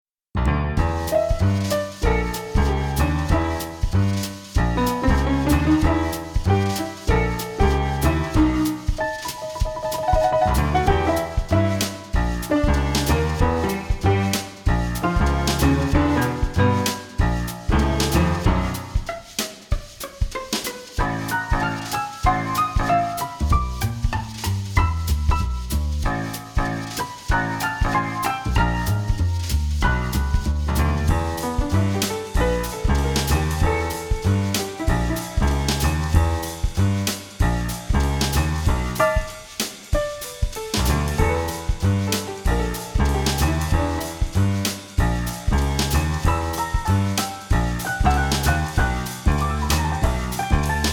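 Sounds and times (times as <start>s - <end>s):
evil jazz music: 0.5s - 50.9s.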